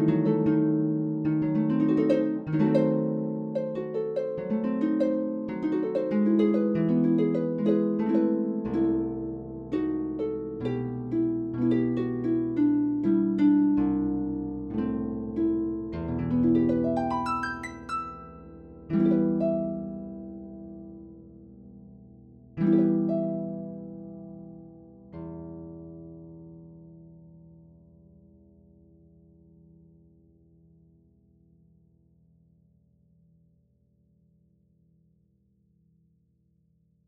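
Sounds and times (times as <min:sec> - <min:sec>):
harp playing a Baroque toccata: 0:00.0 - 0:27.0.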